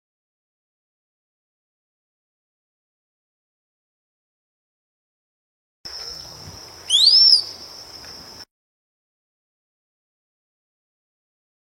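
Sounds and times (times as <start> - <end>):
high-pitched insect buzz: 5.9 - 8.4
rose-collared piha whistling: 6.8 - 7.6.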